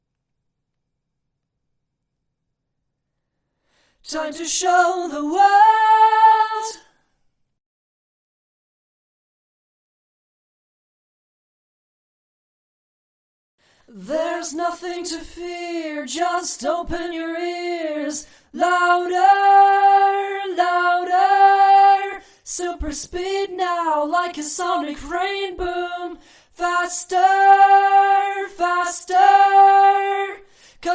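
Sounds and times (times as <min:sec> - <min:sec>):
a cappella singing: 0:04.0 - 0:07.0, 0:13.9 - 0:30.9.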